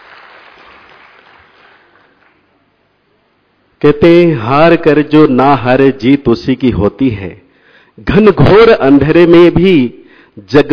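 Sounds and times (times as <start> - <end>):
audience applause: 0.0 - 2.5
speech: 3.8 - 7.4, 8.0 - 10.7.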